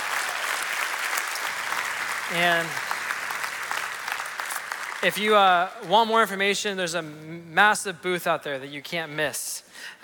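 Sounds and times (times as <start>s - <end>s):
audience applauding: 0.0s - 5.7s
speech: 2.3s - 2.8s, 5.0s - 10.0s.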